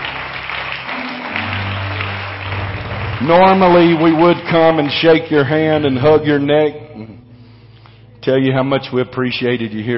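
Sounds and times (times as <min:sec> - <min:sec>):
audience clapping: 0:00.0 - 0:06.0
low sustained musical tone: 0:00.0 - 0:09.9
speech: 0:03.2 - 0:07.1, 0:08.2 - 0:09.9.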